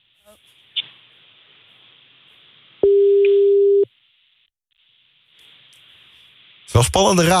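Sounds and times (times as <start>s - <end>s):
faint hiss: 0.0s - 2.9s, 3.9s - 7.3s
telephone tone after a failed call: 2.8s - 3.9s
speech: 6.7s - 7.3s.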